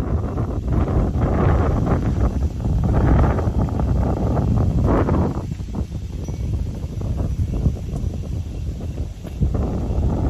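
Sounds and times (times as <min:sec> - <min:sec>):
heavy rain at night: 0:00.0 - 0:10.2
wind at night: 0:00.0 - 0:10.2.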